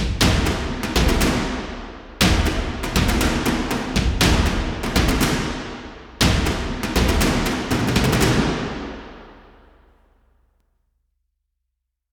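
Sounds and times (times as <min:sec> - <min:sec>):
combat music: 0:00.2 - 0:09.7.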